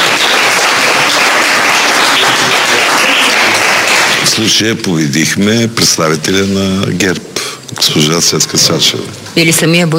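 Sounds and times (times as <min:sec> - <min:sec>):
audience applause: 0:00.0 - 0:04.6
speech: 0:04.4 - 0:09.9.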